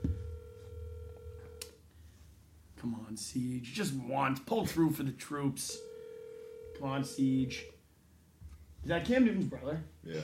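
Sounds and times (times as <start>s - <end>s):
phone ringing on speakerphone: 0.0s - 1.6s, 5.7s - 7.7s
faint low hum: 0.0s - 10.2s
speech: 2.8s - 5.9s, 6.8s - 7.8s, 8.8s - 10.2s.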